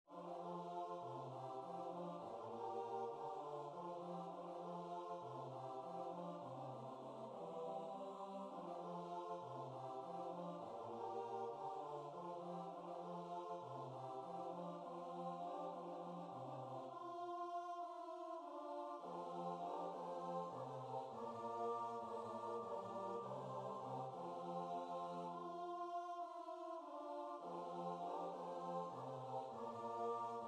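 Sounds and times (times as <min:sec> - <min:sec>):
choir singing: 0:00.1 - 0:30.4.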